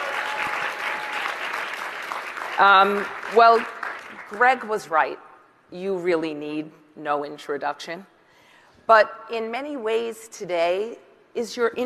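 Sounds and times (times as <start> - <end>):
audience applause: 0.0 - 4.3
speech: 2.6 - 8.1, 8.9 - 11.8.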